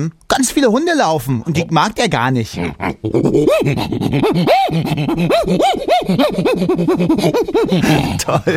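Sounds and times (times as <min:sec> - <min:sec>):
speech: 0:00.0 - 0:08.5
voice imitating an agitated prosimian with squeaky chirps: 0:02.6 - 0:08.2.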